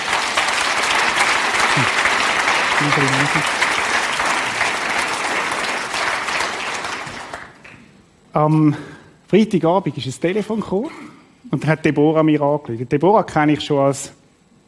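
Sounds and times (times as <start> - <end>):
audience applause: 0.0 - 7.8
speech: 2.8 - 3.7, 8.4 - 14.2.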